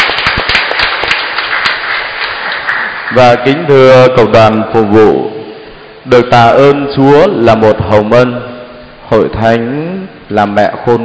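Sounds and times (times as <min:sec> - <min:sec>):
loud round of applause from many people: 0:00.0 - 0:04.3
speech: 0:03.1 - 0:05.3, 0:06.0 - 0:08.5, 0:09.1 - 0:11.0.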